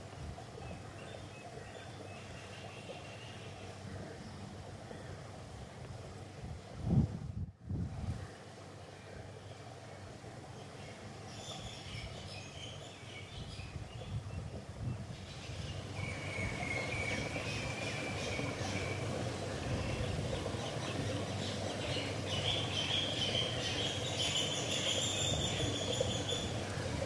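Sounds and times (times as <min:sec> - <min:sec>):
Sunday morning nature sounds: 0:00.0 - 0:27.0.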